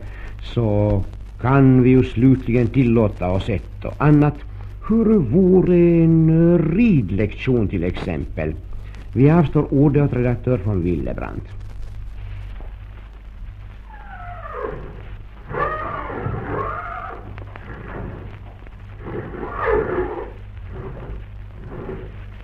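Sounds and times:
faint shuffling: 0.0 - 22.4
steady low hum: 0.0 - 22.4
speech: 0.5 - 11.6
horses whinnying and snorting in a stable: 13.9 - 18.3, 19.0 - 22.2.

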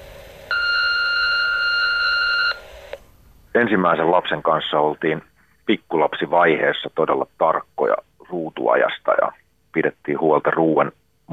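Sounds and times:
answering machine beep tone: 0.5 - 2.7
speech: 3.6 - 11.3.

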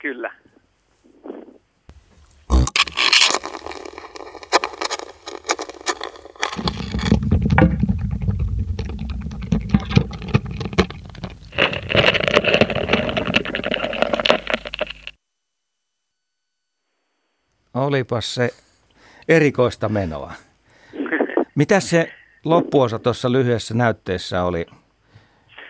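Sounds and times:
speech: 0.0 - 0.4, 18.0 - 18.6, 19.3 - 20.5, 21.6 - 24.8
ladybird walking, contact microphone recording: 1.9 - 15.2.

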